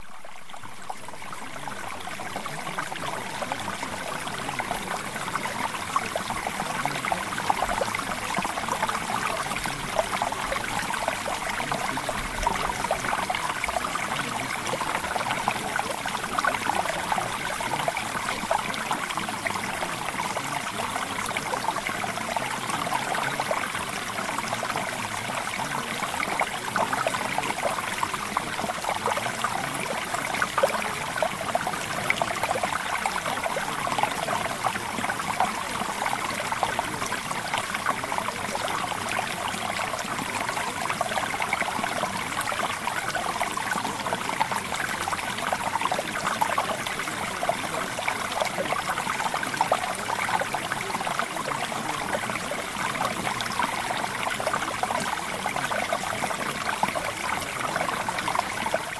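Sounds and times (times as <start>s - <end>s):
mountain stream flowing: 0.0s - 58.9s.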